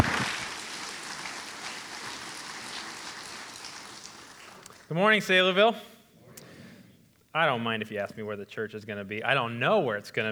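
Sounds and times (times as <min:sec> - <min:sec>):
audience applause: 0:00.0 - 0:04.9
speech: 0:04.9 - 0:05.9, 0:07.4 - 0:10.3.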